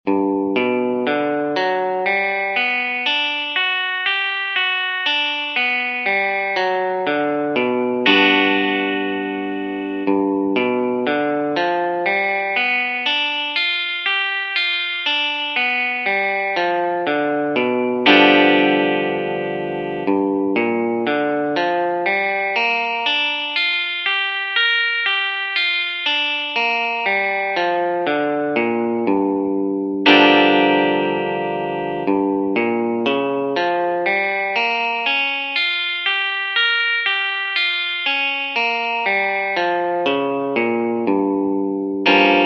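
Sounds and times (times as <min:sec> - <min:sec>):
arpeggios in G: 0:00.1 - 0:42.4.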